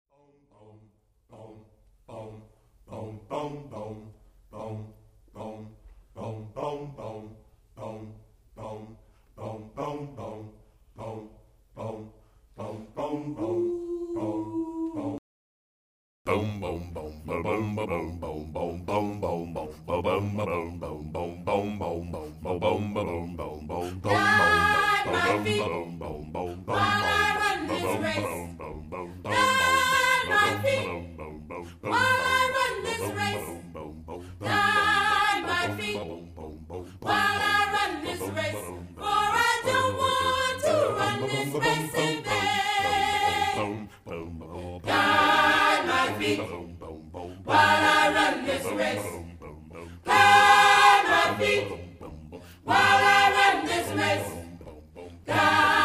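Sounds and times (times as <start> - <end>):
choir singing: 0.1 - 15.2, 16.3 - 55.8.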